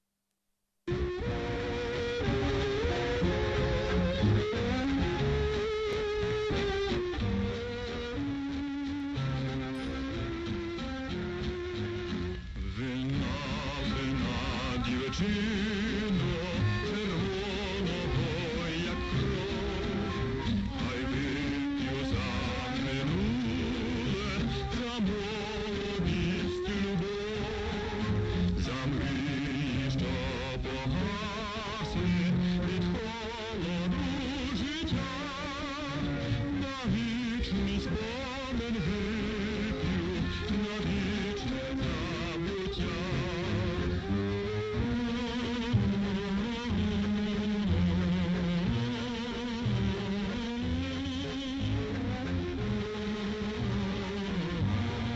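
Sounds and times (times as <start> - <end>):
Ukrainian tango music: 0.9 - 55.1.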